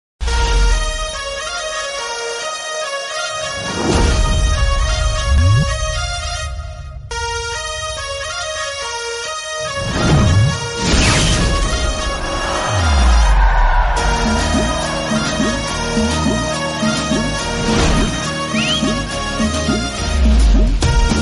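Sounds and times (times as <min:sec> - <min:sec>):
background music ringtone: 0:00.2 - 0:21.1.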